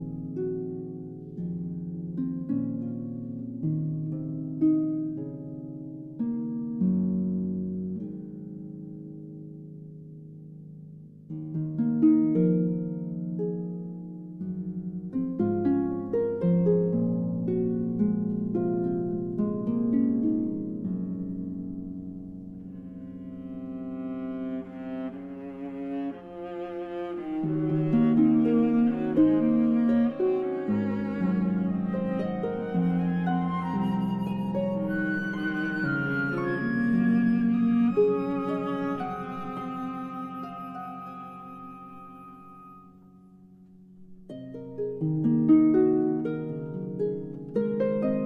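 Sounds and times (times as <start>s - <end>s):
harp concerto lullaby: 0.0s - 48.2s.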